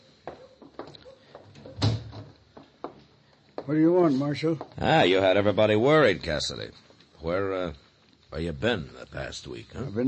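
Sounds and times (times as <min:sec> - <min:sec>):
door creaking: 0:01.5 - 0:02.4
wooden door swinging shut with a solid thump: 0:01.6 - 0:02.3
speech: 0:03.7 - 0:10.0.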